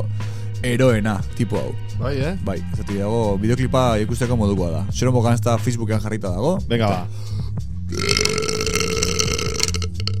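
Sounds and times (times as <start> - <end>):
speech: 0.6 - 8.4
long loud burp: 7.9 - 10.1.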